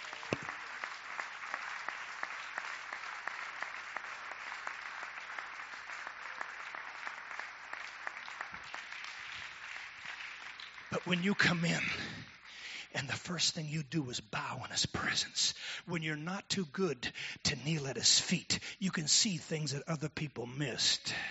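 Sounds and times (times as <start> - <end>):
audience clapping hands: 0.0 - 13.9
speech: 11.0 - 12.2, 13.0 - 21.2.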